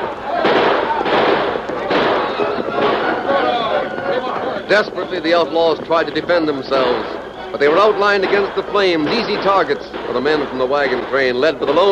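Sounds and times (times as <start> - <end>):
people shouting: 0.0 - 5.2
gunshots in a shootout: 0.0 - 11.8
speech: 4.7 - 11.8.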